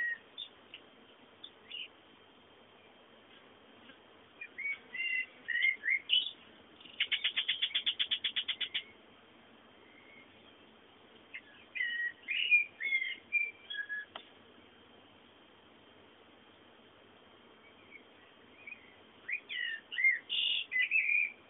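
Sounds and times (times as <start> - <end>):
bird calls: 0.0 - 0.6, 1.4 - 2.0, 4.4 - 9.0, 9.8 - 10.6, 11.3 - 14.2, 17.6 - 21.4
background hiss: 0.0 - 21.4.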